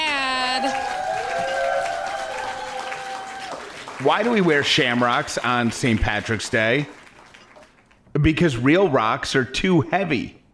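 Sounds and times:
audience applause at Ellie's Comedy Club welcoming a comedian: 0:00.0 - 0:08.0
speech: 0:04.0 - 0:07.0, 0:08.2 - 0:10.4.

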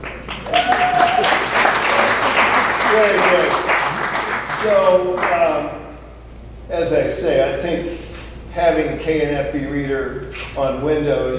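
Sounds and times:
audience applause: 0:00.0 - 0:05.7
speech: 0:03.0 - 0:03.6, 0:04.6 - 0:05.8, 0:06.7 - 0:08.0, 0:08.6 - 0:11.3.

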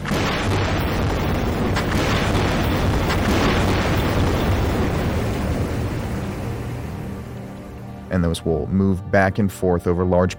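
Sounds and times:
seismic survey air guns firing underwater: 0:00.0 - 0:07.7
speech: 0:08.2 - 0:10.3.

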